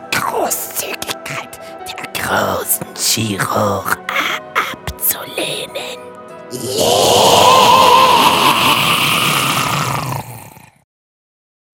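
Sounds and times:
speech: 0:00.4 - 0:01.5, 0:02.3 - 0:04.4, 0:06.5 - 0:07.7
creature screaming: 0:06.5 - 0:10.8.

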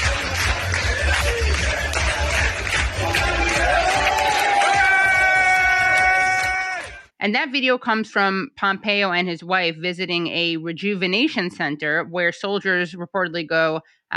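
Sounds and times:
crowd clapping along: 0:00.0 - 0:07.1
speech: 0:07.2 - 0:14.1.

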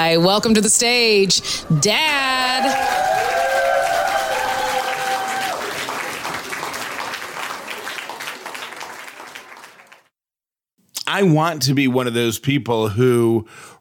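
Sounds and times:
speech: 0:00.0 - 0:03.2, 0:11.1 - 0:13.7
comedy club audience applause: 0:01.9 - 0:10.1.

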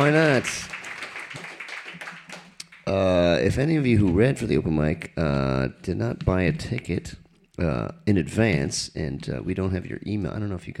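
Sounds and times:
speech: 0:00.0 - 0:00.8, 0:02.9 - 0:10.7
crowd applauding: 0:00.0 - 0:03.0.

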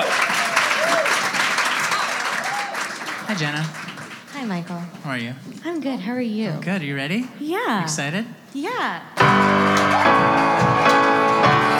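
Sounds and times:
faint whistles or cheers from the crowd: 0:00.0 - 0:03.0
audience applauding: 0:00.0 - 0:04.7, 0:09.2 - 0:11.7
speech: 0:03.3 - 0:03.8, 0:04.4 - 0:11.0.

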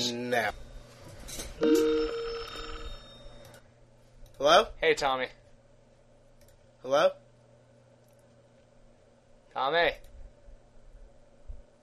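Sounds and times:
speech: 0:00.1 - 0:00.7, 0:01.3 - 0:02.2, 0:04.4 - 0:05.4, 0:06.8 - 0:07.2, 0:09.6 - 0:10.1
telephone ringing: 0:01.6 - 0:03.4.

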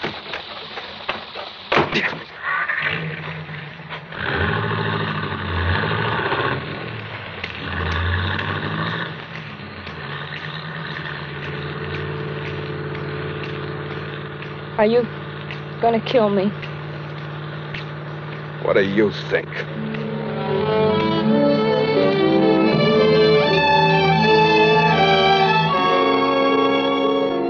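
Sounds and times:
speech: 0:02.0 - 0:03.3, 0:14.8 - 0:15.2, 0:15.8 - 0:16.7, 0:18.6 - 0:19.9, 0:20.5 - 0:22.4
car engine running and revving: 0:02.7 - 0:27.4.

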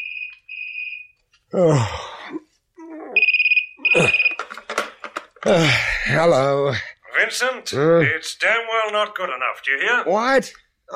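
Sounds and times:
telephone ringing: 0:00.0 - 0:01.2, 0:03.2 - 0:04.9
speech: 0:01.5 - 0:02.4, 0:05.5 - 0:10.9.

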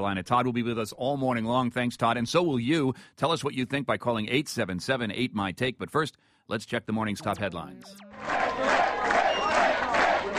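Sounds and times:
speech: 0:00.0 - 0:09.1
crowd cheering and shouting at Mitt Romney's New Hampshire headquarters: 0:07.9 - 0:10.3
shrill whistles: 0:09.0 - 0:09.8.

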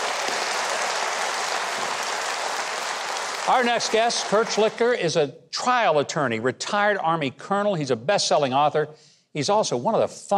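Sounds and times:
talk show studio audience applauding a live music act: 0:00.0 - 0:05.0
speech: 0:03.5 - 0:10.3.

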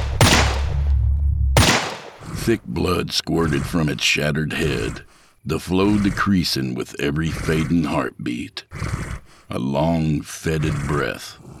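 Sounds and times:
gunshots: 0:00.0 - 0:01.0, 0:01.6 - 0:02.4
speech: 0:02.4 - 0:11.5.

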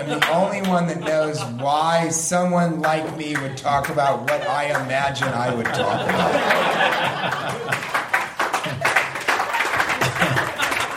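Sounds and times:
speech: 0:00.0 - 0:07.9
laughter: 0:00.0 - 0:10.9
smattering of audience applause: 0:02.8 - 0:10.9.

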